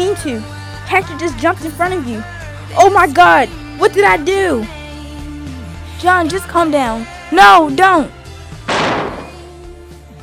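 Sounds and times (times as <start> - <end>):
speech: 0.2 - 4.8, 6.0 - 8.2
gunshot: 8.7 - 9.4.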